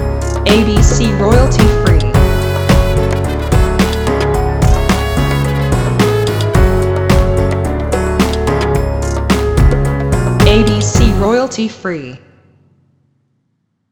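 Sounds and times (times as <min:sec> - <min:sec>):
modern Latino music: 0:00.2 - 0:11.3.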